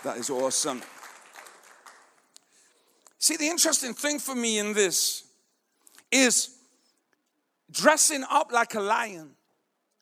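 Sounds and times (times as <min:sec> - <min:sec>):
speech: 0:00.0 - 0:01.1, 0:03.2 - 0:05.3, 0:06.1 - 0:06.6, 0:07.7 - 0:09.4
audience applause: 0:00.0 - 0:02.2.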